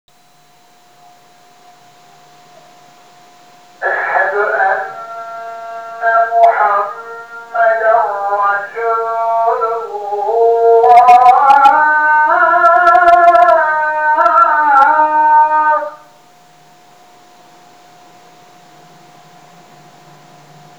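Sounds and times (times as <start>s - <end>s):
call to prayer: 3.8s - 16.2s.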